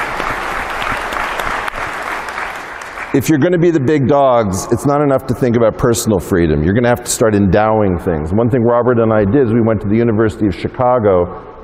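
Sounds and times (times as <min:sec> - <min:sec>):
audience applause: 0:00.0 - 0:03.2
speech: 0:03.1 - 0:11.5.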